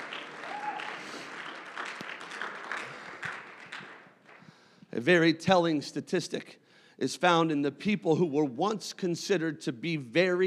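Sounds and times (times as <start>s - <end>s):
audience clapping: 0.0s - 4.6s
speech: 5.0s - 10.4s.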